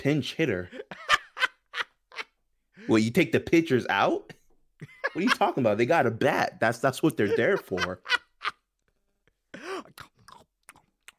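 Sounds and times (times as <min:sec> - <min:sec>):
speech: 0:00.0 - 0:01.0, 0:02.9 - 0:08.2
laughter: 0:07.1 - 0:08.6
person imitating chewing on sunflower seeds: 0:09.6 - 0:11.1.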